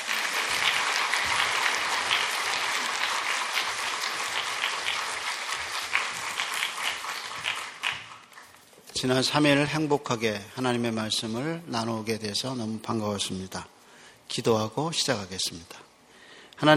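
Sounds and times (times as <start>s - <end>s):
audience applause welcoming speaker: 0.0s - 8.6s
speech: 9.0s - 13.7s, 14.4s - 15.8s.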